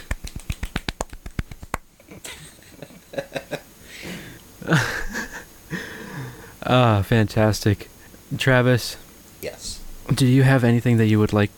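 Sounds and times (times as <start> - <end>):
golf clap, soft slow hand clapping: 0.0 - 1.9
laughter: 2.1 - 3.7, 4.6 - 5.9
speech: 4.7 - 4.9, 6.7 - 9.0, 10.1 - 11.5.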